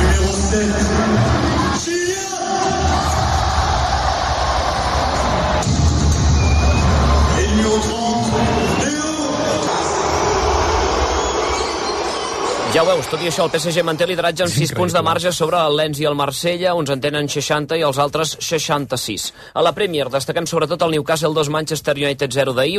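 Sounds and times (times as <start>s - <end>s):
stadium crowd applauding: 0.0s - 15.3s
speech: 12.7s - 22.7s.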